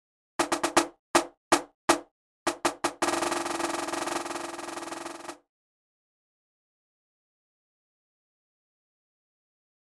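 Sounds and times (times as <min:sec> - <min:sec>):
drum at 160: 0:00.4 - 0:05.4.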